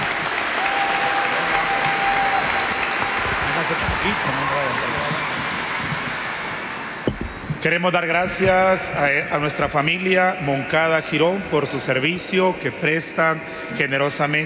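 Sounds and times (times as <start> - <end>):
applause: 0.0 - 6.4
speech: 7.6 - 14.4.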